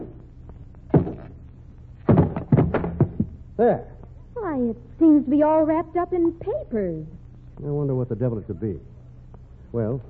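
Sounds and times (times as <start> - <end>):
hammer knocking lid off packing case: 2.1 - 3.4
speech: 3.6 - 8.9, 9.7 - 10.0.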